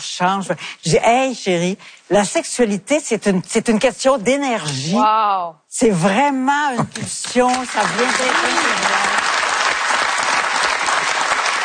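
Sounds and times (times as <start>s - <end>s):
speech: 0.0s - 9.2s
young women applauding: 7.5s - 11.6s.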